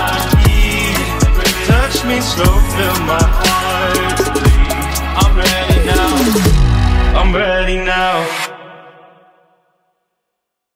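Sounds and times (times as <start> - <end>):
bachata remix: 0.0 - 8.6.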